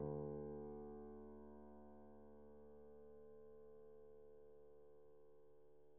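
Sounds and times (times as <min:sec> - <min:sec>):
Steinway piano played pianissimo: 0:00.0 - 0:04.4.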